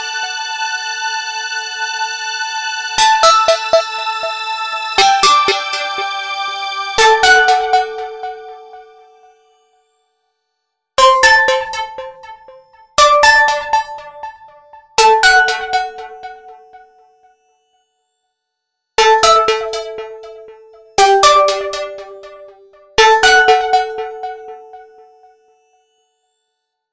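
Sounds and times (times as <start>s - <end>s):
trance music: 0.0s - 9.1s, 11.1s - 16.6s, 19.0s - 24.6s.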